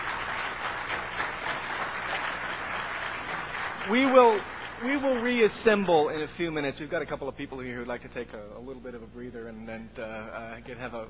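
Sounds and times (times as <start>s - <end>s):
audience applause: 0.0s - 6.0s
speech: 3.9s - 11.0s.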